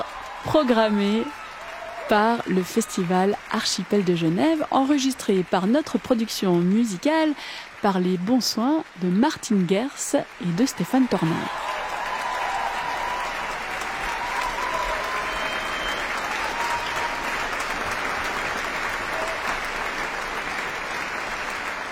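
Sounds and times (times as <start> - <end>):
audience applause in a concert hall after a choral work: 0.0 - 21.9
speech: 0.4 - 1.4, 2.1 - 11.7.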